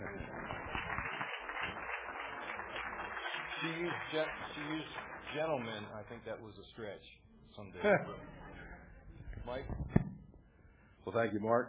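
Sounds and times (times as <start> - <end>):
audience applause: 0.0 - 6.2
speech: 3.6 - 8.4, 9.5 - 10.0, 11.0 - 11.6.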